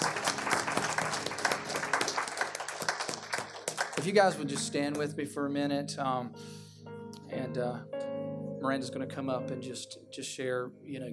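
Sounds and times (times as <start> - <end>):
audience hand clap of praise: 0.0 - 5.1
speech: 4.0 - 6.6, 7.3 - 8.0, 8.6 - 11.1.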